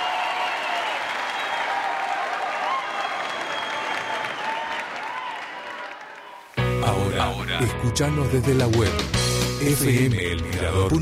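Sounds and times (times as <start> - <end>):
loud applause from a large crowd: 0.0 - 7.1
speech: 7.3 - 11.0.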